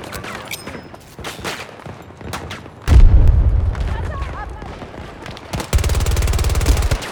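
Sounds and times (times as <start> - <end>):
video game grenade explosion: 2.9 - 7.1
video game gunfire: 2.9 - 7.1
people talking: 3.8 - 5.2
video game automatic gunfire: 4.0 - 7.1.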